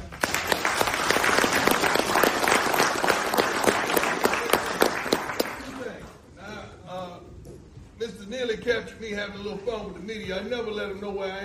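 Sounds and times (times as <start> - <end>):
applause for the kickers: 0.0 - 6.2
speech: 9.0 - 11.4.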